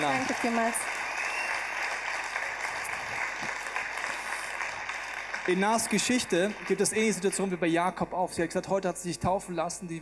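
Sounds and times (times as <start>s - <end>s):
audience applause: 0.0s - 7.8s
speech: 0.1s - 1.0s, 5.5s - 10.0s.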